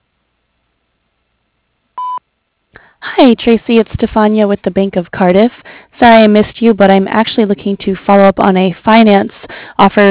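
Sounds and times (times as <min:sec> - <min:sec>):
answering machine beep: 0:02.0 - 0:02.2
speech: 0:03.2 - 0:10.0.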